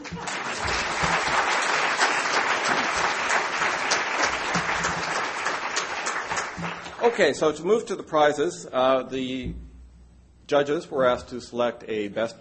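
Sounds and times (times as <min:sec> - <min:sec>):
audience applause: 0:00.0 - 0:07.2
speech: 0:07.1 - 0:09.6, 0:10.5 - 0:12.3.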